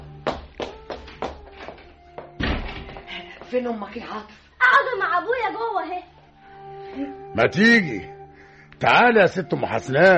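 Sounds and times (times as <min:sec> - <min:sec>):
apartment door being opened: 0:02.4 - 0:03.0
speech: 0:03.5 - 0:06.1, 0:06.9 - 0:08.2, 0:08.8 - 0:10.1.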